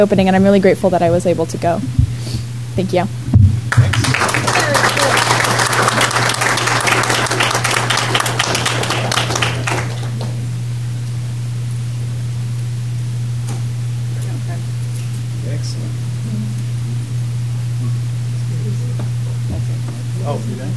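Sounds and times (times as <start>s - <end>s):
speech: 0.0s - 2.0s, 2.8s - 3.9s
steady low hum: 0.0s - 20.7s
audience applause for three presenters at a STEM event: 3.7s - 10.6s.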